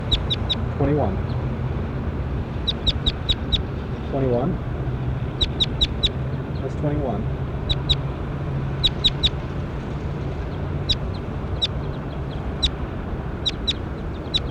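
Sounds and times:
bird calling in sharp high-pitched chirps: 0:00.0 - 0:01.5, 0:02.6 - 0:04.2, 0:05.3 - 0:06.8, 0:07.6 - 0:14.4
steady noisy low rumble: 0:00.0 - 0:14.4
speech: 0:00.8 - 0:01.3, 0:04.1 - 0:04.7, 0:06.7 - 0:07.4.

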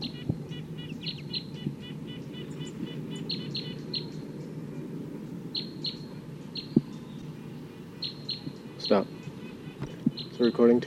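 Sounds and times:
wild bird calling: 0:00.0 - 0:10.8
speech: 0:08.9 - 0:09.2, 0:10.4 - 0:10.8.

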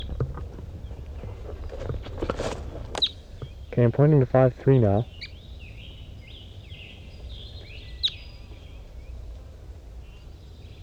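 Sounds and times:
distant wild crossbill calling: 0:00.0 - 0:09.4
speech: 0:03.8 - 0:05.1.

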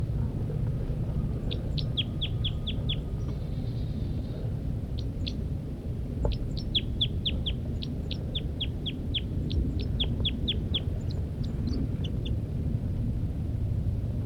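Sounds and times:
low rumbling background: 0:00.0 - 0:14.2
female bird giving flight calls from the nest: 0:01.5 - 0:04.3, 0:06.2 - 0:12.3.

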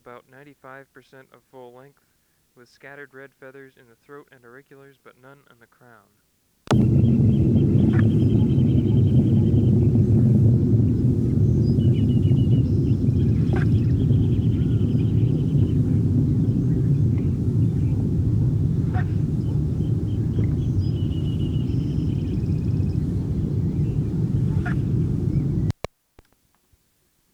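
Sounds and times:
speech: 0:00.1 - 0:06.9
juvenile Anna's hummingbird song phrases: 0:06.7 - 0:25.7
loud steady low rumble: 0:06.7 - 0:25.7.

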